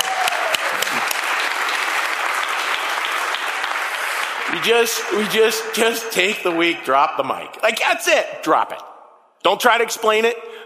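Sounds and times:
audience applause: 0.0 - 5.4
speech: 4.6 - 10.6.

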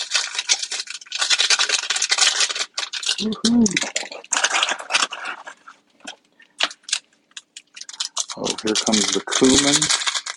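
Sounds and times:
dried onion flakes pouring into a pot: 0.0 - 5.0, 7.8 - 10.3
speech: 3.2 - 4.0, 8.6 - 10.0.

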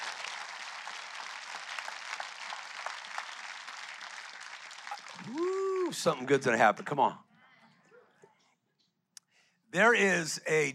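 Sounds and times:
audience clapping: 0.0 - 6.2
speech: 5.3 - 7.3, 9.7 - 10.7.

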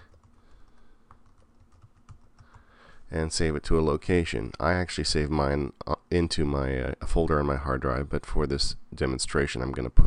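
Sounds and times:
computer keyboard typing a file name: 0.0 - 2.7
speech: 3.1 - 10.0.

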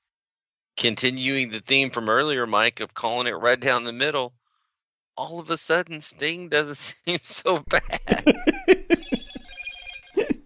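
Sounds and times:
speech: 0.8 - 4.4, 5.2 - 9.2
laughter: 7.6 - 10.4
phone ringing with a game tune ringtone: 8.8 - 10.4.

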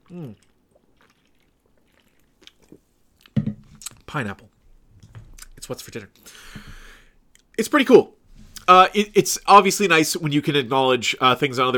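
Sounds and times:
person taking a drink and swallowing: 0.0 - 4.1, 5.0 - 7.1
speech: 0.1 - 0.5, 4.1 - 4.5, 5.7 - 6.7, 7.6 - 11.7.

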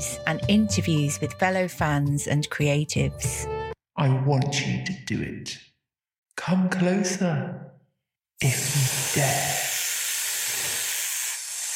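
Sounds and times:
speech: 0.0 - 5.7, 6.4 - 7.7, 8.4 - 9.6
snakes hissing: 8.4 - 11.7.

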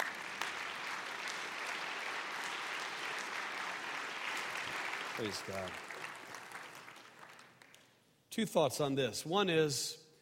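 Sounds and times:
audience applause: 0.0 - 7.8
speech: 5.2 - 5.9, 8.4 - 10.0.

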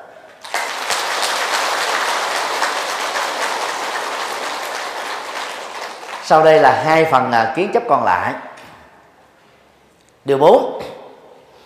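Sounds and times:
audience applause: 0.4 - 6.7
speech: 6.3 - 8.5, 10.3 - 10.7.

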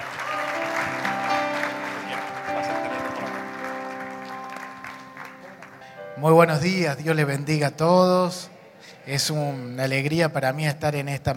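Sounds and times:
audience applause: 0.0 - 6.0
keyboard chords: 0.0 - 7.9
speech: 6.2 - 11.3.

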